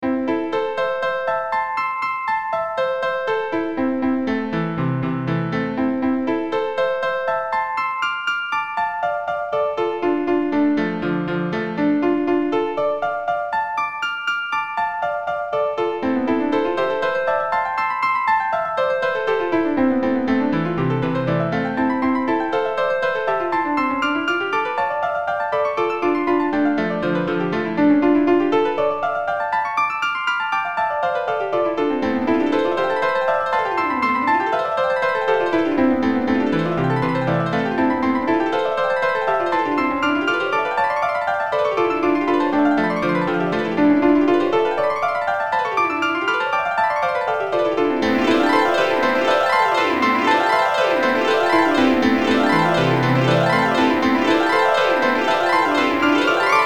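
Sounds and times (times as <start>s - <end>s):
piano superplay: 0.0s - 56.6s
chiptune music: 19.2s - 29.1s, 31.1s - 56.6s.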